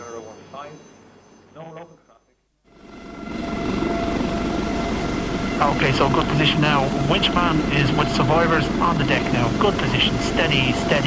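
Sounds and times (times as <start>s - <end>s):
speech: 1.6s - 2.1s, 5.8s - 11.0s
Air Corps rescue helicopter lifting off: 2.7s - 11.0s.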